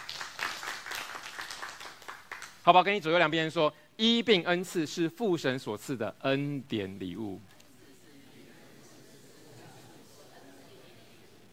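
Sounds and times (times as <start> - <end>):
church congregation clapping: 0.0 - 3.2
speech: 2.6 - 7.5.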